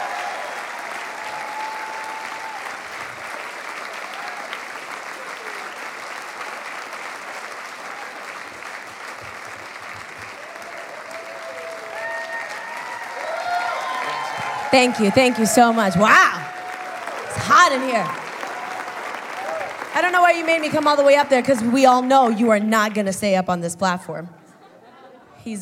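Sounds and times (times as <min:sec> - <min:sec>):
faint cheers: 0:00.0 - 0:03.0, 0:04.0 - 0:04.6, 0:10.4 - 0:19.9
audience applause: 0:00.0 - 0:23.2
speech: 0:14.7 - 0:16.6, 0:17.6 - 0:18.2, 0:20.0 - 0:24.4, 0:25.4 - 0:25.6.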